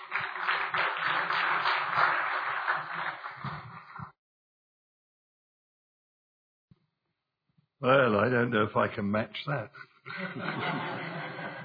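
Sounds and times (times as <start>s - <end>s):
church congregation applauding to welcome a pastor: 0.0s - 4.1s
speech: 7.8s - 11.3s
laughter: 10.0s - 11.6s.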